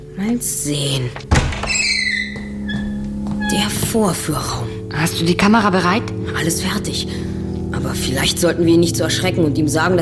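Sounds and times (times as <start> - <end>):
speech: 0.2 - 1.9, 3.5 - 10.0
door creaking open: 0.8 - 4.4
door latch thunk: 1.1 - 3.4
steady low hum: 1.1 - 9.5.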